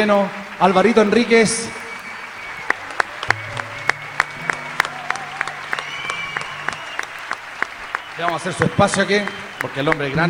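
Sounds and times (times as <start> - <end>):
speech: 0.0 - 1.8, 8.2 - 10.2
audience applause: 0.0 - 10.2
faint whistle-like tones: 1.8 - 8.4.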